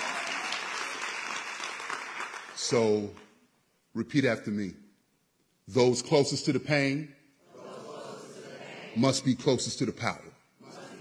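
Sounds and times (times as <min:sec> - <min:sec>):
audience clapping during a speech about community organizing on Chicago's west side: 0:00.0 - 0:03.4
speech: 0:02.7 - 0:03.2, 0:04.0 - 0:04.8, 0:05.7 - 0:07.2, 0:09.0 - 0:10.3.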